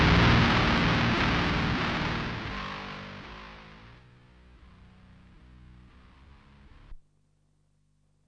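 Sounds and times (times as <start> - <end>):
heavy guitar loop: 0.0 - 6.5.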